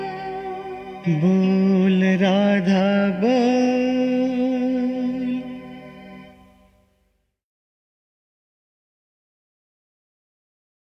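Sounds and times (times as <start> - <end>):
sad song: 0.0 - 6.9.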